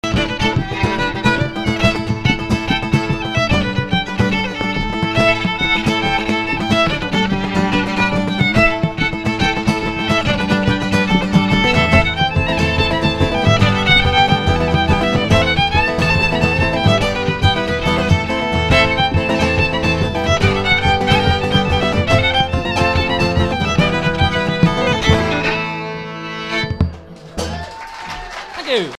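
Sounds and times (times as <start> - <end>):
jig music: 0.0 - 27.8.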